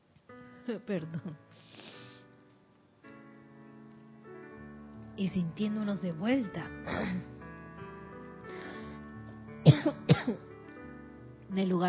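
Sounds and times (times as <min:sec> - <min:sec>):
speech: 0:00.7 - 0:01.7, 0:05.2 - 0:07.3, 0:09.8 - 0:10.5, 0:11.5 - 0:11.8
coughing fit: 0:09.6 - 0:10.4.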